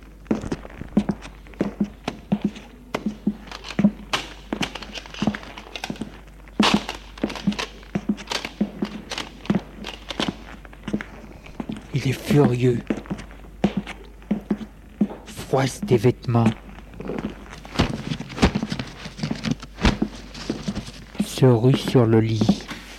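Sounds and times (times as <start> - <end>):
heavy footsteps pacing around an apartment: 0.0 - 22.9
speech: 12.1 - 12.9, 15.6 - 16.6, 21.4 - 22.6.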